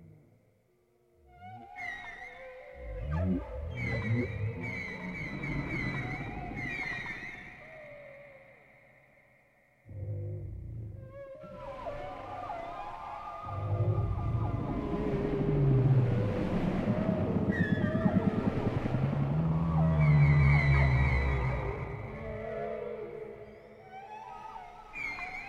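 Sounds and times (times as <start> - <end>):
whale low groaning moans: 2.7 - 7.4, 9.9 - 12.4, 13.5 - 24.1
whale rapid pulsed grunts: 2.8 - 4.6.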